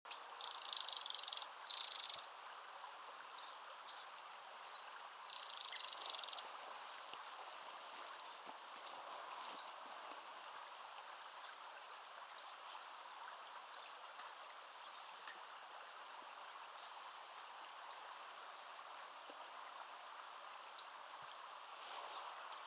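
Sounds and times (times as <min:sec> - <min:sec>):
Eurasian wren calling: 0:00.1 - 0:02.4, 0:03.4 - 0:07.1, 0:08.2 - 0:09.8, 0:11.4 - 0:11.6, 0:12.4 - 0:12.6, 0:13.7 - 0:14.0, 0:16.7 - 0:17.0, 0:17.9 - 0:18.2, 0:20.8 - 0:21.0
soft hiss: 0:00.1 - 0:22.6.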